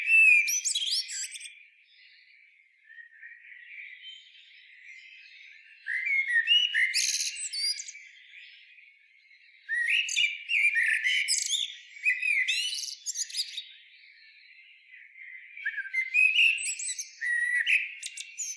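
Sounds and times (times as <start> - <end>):
common blackbird Turdus merula singing: 0.0 - 18.5.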